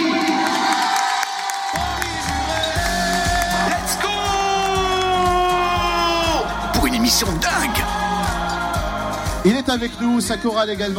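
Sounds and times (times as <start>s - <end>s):
studio audience cheering and applauding: 0.0s - 9.6s
speech: 9.4s - 10.9s.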